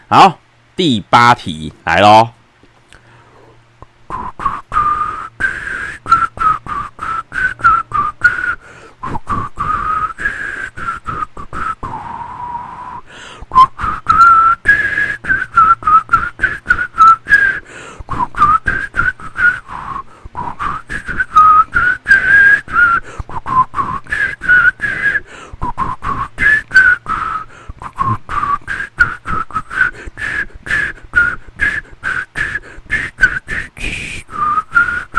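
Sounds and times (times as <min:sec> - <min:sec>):
speech: 0:00.1 - 0:02.4
person whistling a melody: 0:04.1 - 0:35.1.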